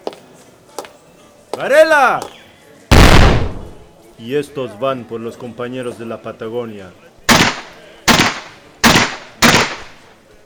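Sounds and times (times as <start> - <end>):
speech: 1.6 - 2.4, 4.2 - 7.1
Colt revolver gunshots: 7.3 - 10.0.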